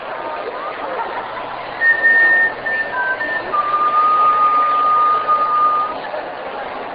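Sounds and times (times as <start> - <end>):
whistle: 1.8 - 6.0.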